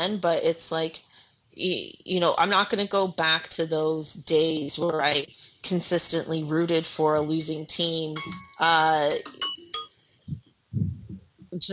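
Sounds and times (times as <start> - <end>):
speech: 0.0 - 9.5
timer going off: 8.2 - 9.9.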